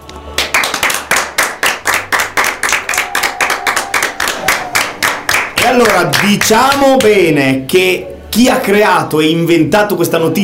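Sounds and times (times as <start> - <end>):
applause: 0.3 - 7.2
speech: 5.7 - 10.4.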